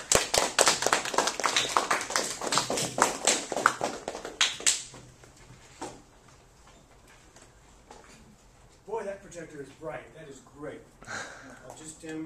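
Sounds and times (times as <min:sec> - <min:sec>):
audience applause welcoming a speaker at a programming talk: 0:00.0 - 0:04.8
speech: 0:09.5 - 0:12.2.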